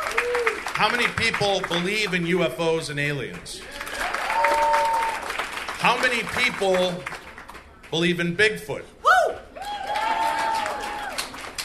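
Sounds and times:
person cheering: 0:00.0 - 0:00.6, 0:03.7 - 0:05.3, 0:09.0 - 0:11.2
audience clapping: 0:00.0 - 0:02.5, 0:03.1 - 0:08.2, 0:09.6 - 0:11.6
speech: 0:00.8 - 0:03.8, 0:05.8 - 0:07.2, 0:07.9 - 0:09.0.

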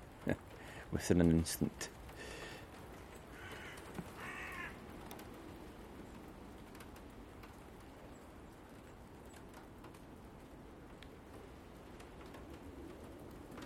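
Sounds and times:
water dripping off trees onto buckets: 0:00.0 - 0:13.6
speech: 0:00.2 - 0:02.0
crow cawing: 0:03.3 - 0:04.8.

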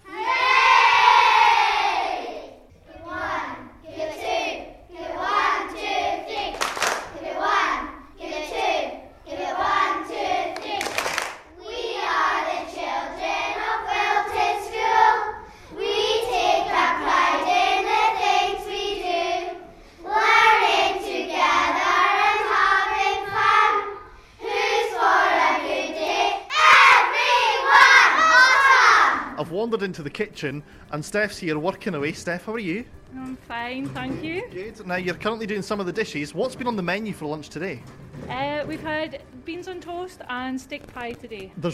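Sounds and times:
primary school children singing school song: 0:00.0 - 0:29.4
speech: 0:29.8 - 0:41.7.

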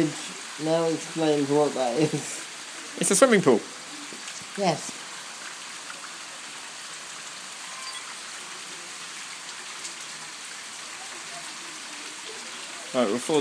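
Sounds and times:
speech: 0:00.0 - 0:02.4, 0:03.0 - 0:03.8, 0:04.6 - 0:05.0, 0:12.9 - 0:13.3
water streaming down a flight of steps: 0:00.0 - 0:13.3.

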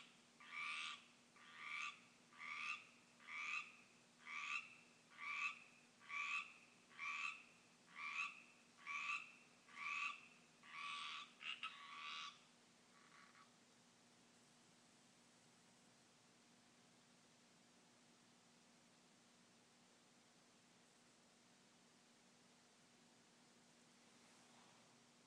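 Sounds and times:
Pacific tree frog chorus in a yard: 0:00.0 - 0:13.5.

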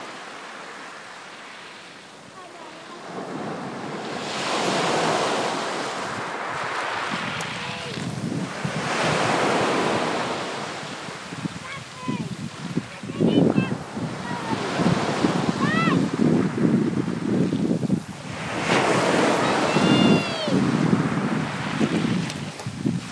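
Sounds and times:
sea waves: 0:00.0 - 0:23.1
boy yelling: 0:07.4 - 0:08.0, 0:11.6 - 0:14.7, 0:15.5 - 0:16.1, 0:19.2 - 0:20.7.

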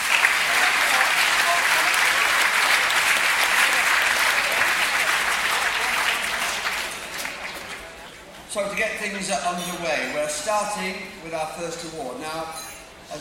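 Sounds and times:
audience applause: 0:00.0 - 0:08.2
speech: 0:08.6 - 0:13.1.

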